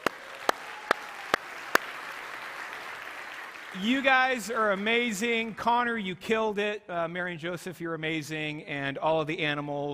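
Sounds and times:
audience applause: 0:00.0 - 0:05.3
speech: 0:03.7 - 0:09.9.

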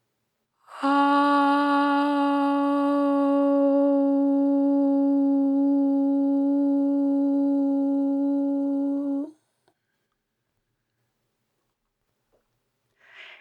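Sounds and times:
sustained chanted O vowel: 0:00.7 - 0:09.3.

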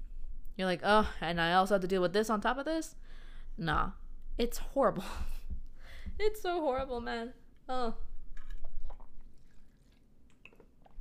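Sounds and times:
speech: 0:00.6 - 0:05.4, 0:06.2 - 0:08.1
person sipping water: 0:08.3 - 0:10.9.

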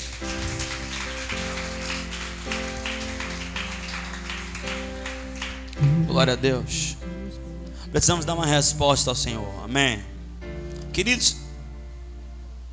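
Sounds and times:
audience applauding: 0:00.0 - 0:06.0
speech: 0:06.2 - 0:07.0, 0:07.9 - 0:10.1, 0:11.0 - 0:11.4.

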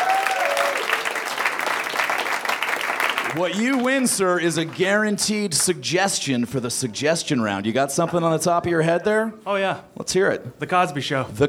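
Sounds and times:
audience applause: 0:00.0 - 0:05.0
speech: 0:03.4 - 0:11.4.

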